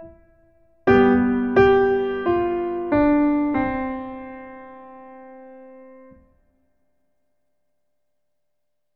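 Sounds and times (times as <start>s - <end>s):
Christmas song: 0.0s - 6.4s.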